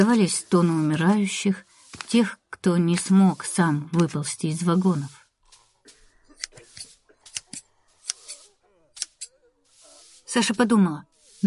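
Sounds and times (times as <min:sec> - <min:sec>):
speech: 0:00.0 - 0:05.2, 0:10.3 - 0:11.4
scissors snipping a girl's braid: 0:06.4 - 0:08.4, 0:09.0 - 0:09.3.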